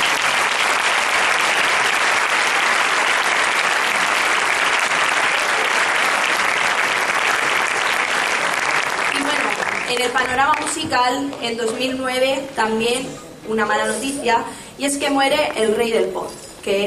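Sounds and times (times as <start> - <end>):
audience applause: 0.0 - 10.8
speech: 10.3 - 16.8.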